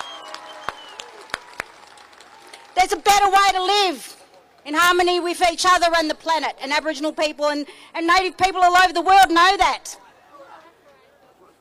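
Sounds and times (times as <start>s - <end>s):
audience applause: 0.0s - 2.8s
speech: 2.8s - 10.0s.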